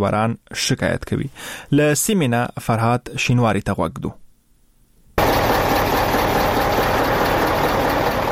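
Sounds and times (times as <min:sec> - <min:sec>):
speech: 0:00.0 - 0:04.2
loaded trucks idling at the Torkham border gate: 0:05.2 - 0:08.2.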